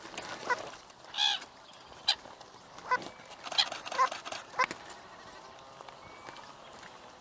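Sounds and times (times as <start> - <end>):
lake duck calls: 0.4 - 1.4, 2.8 - 4.8.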